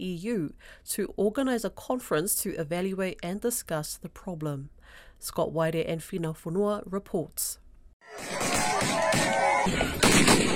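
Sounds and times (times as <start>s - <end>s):
speech: 0.0s - 10.5s
gunfire from gunmen in an armed ambush in Enga province, Papua New Guinea: 8.2s - 10.5s.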